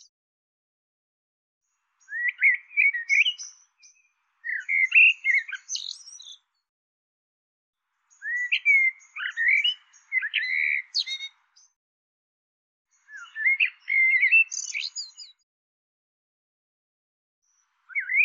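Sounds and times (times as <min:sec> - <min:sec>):
bird twittering chirps: 0:02.0 - 0:06.5, 0:08.1 - 0:11.8, 0:12.9 - 0:15.4, 0:17.5 - 0:18.2.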